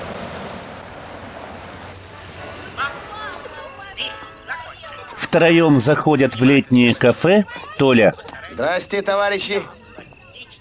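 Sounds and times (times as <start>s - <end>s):
Black Sea waves washing onto a sandy shore: 0.0s - 4.2s
wind: 0.0s - 10.5s
speech: 5.3s - 9.8s.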